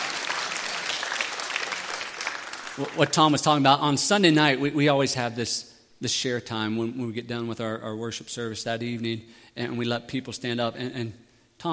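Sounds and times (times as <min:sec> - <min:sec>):
church audience applause: 0:00.0 - 0:03.2
speech: 0:02.8 - 0:11.7.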